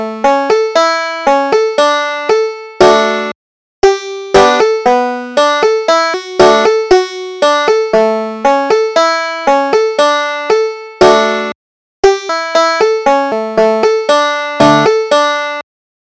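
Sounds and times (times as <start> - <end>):
banjo playing: 0.0 - 15.6.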